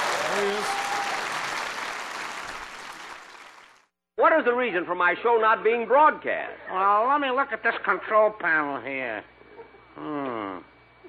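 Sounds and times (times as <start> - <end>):
crowd applauding: 0.0 - 3.9
speech: 4.4 - 9.3, 10.0 - 10.7.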